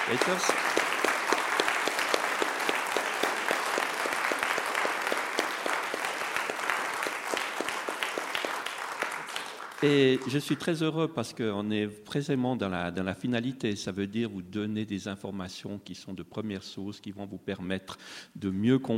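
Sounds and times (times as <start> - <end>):
audience applause: 0.0 - 10.8
speech: 0.1 - 0.9, 9.8 - 18.9.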